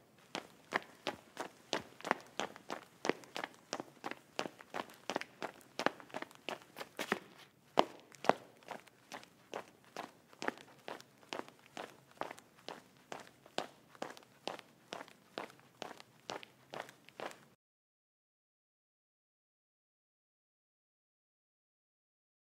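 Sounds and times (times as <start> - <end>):
shoes on ceramic: 0.0 - 17.6.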